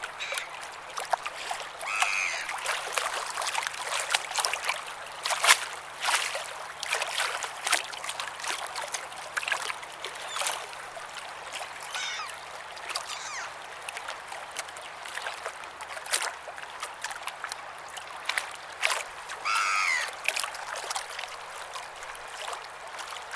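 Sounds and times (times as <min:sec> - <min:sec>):
ocean waves: 0:00.0 - 0:15.5, 0:18.3 - 0:23.2
seagulls calling: 0:00.1 - 0:00.6, 0:01.8 - 0:02.5, 0:11.9 - 0:12.4, 0:13.0 - 0:13.6, 0:19.4 - 0:20.2.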